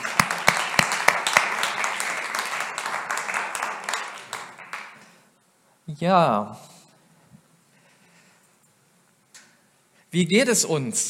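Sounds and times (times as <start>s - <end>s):
audience applause: 0.0s - 5.1s
speech: 6.0s - 6.6s, 10.1s - 11.0s.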